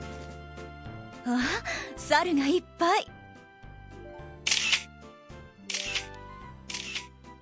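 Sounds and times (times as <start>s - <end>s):
speech: 1.2s - 3.1s
camera shutters clicking, taking photos: 4.4s - 4.9s, 5.6s - 7.1s.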